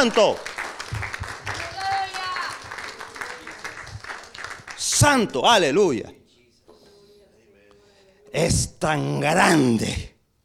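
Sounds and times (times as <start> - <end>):
speech: 0.0 - 1.0, 5.0 - 6.2, 8.3 - 10.1
audience applause: 0.0 - 5.2.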